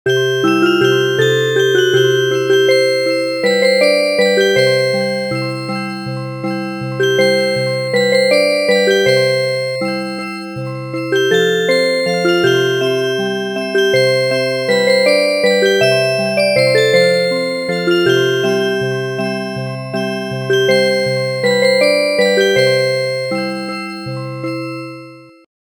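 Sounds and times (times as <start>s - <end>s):
traditional music box: 0.1s - 25.5s.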